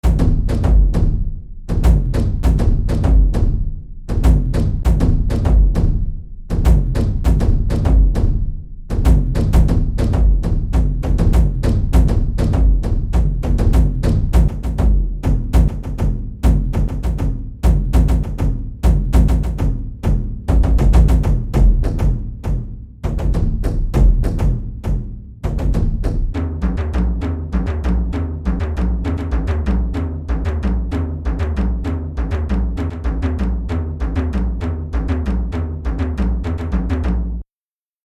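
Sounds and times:
frame drum playing: 0.0s - 37.4s.

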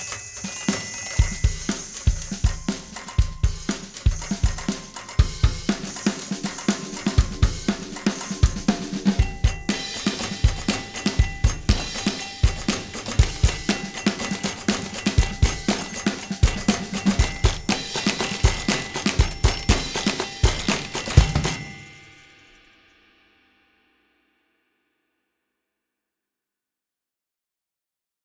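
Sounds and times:
five typewriters typing: 0.0s - 22.3s.

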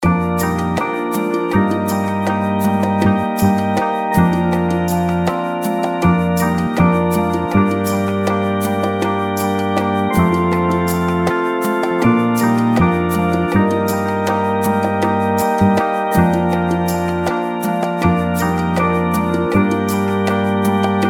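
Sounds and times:
arpeggio: 0.0s - 21.0s.

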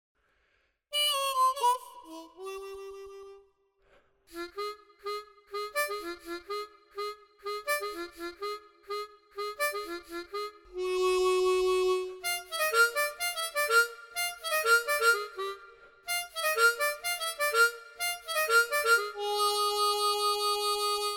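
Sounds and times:
harmonica: 0.9s - 3.6s, 4.3s - 21.1s.

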